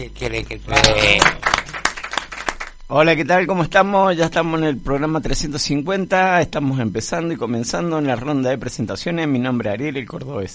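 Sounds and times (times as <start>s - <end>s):
speech: 0.0s - 1.8s, 2.9s - 10.5s
applause: 0.7s - 2.8s.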